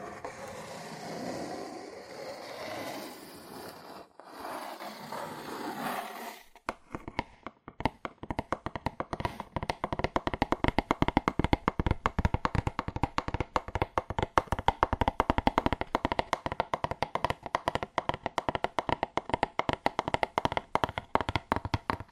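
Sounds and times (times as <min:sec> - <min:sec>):
soft scratching or rubbing: 0:00.0 - 0:06.6
fast aggressive tapping on cardboard: 0:06.8 - 0:22.1.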